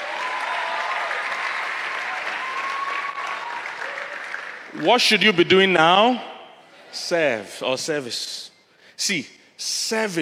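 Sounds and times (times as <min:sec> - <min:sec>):
audience clapping: 0:00.0 - 0:05.2
speech: 0:04.7 - 0:06.3, 0:06.9 - 0:10.2.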